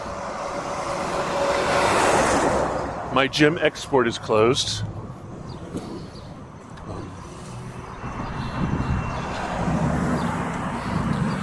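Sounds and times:
big diesel dump truck passing: 0.0 - 11.4
speech: 3.2 - 5.0.

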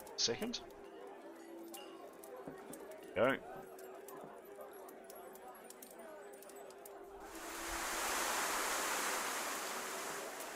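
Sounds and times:
speech: 0.2 - 0.8, 3.2 - 3.7
rain drumming on a roof: 7.2 - 10.5.

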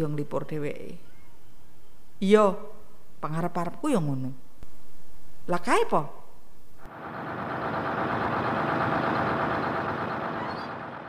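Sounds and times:
speech: 0.0 - 1.1, 2.2 - 4.5, 5.5 - 6.2
heavy bus engine rumbling: 6.8 - 11.0.

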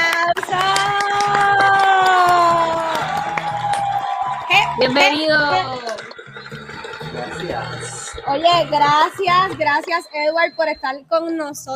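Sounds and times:
audience applause: 0.0 - 10.2
speech: 4.8 - 5.9, 7.4 - 11.7.

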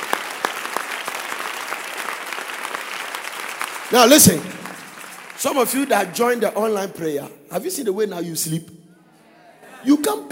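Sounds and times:
crowd clapping: 0.0 - 6.5
speech: 3.9 - 4.6, 5.4 - 8.8, 9.8 - 10.2.

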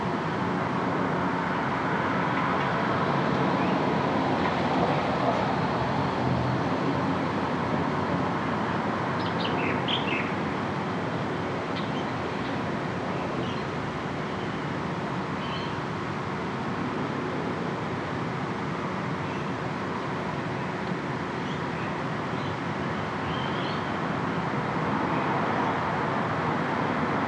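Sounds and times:
road traffic rumble heard from a front room: 0.0 - 27.2.

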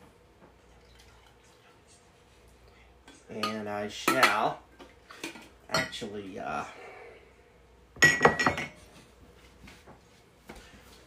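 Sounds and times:
low hum: 0.0 - 11.0
coffee poured into a cup: 0.7 - 1.8
speech: 3.3 - 4.7, 5.7 - 6.9.

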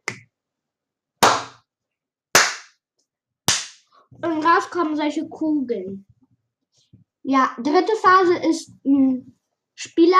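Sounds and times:
fists clapping together: 1.2 - 1.6, 2.3 - 2.8, 3.5 - 3.8
speech: 4.1 - 6.1, 7.2 - 10.1.

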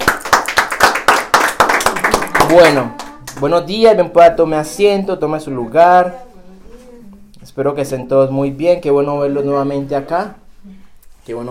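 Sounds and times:
audience applauding: 0.0 - 3.5
speech: 2.5 - 6.3, 7.6 - 11.5.

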